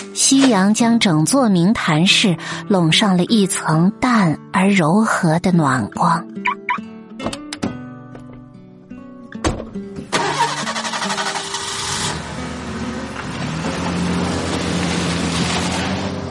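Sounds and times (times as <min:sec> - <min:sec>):
speech: 0:00.2 - 0:06.6
road traffic: 0:10.0 - 0:16.3
car engine: 0:10.1 - 0:16.3.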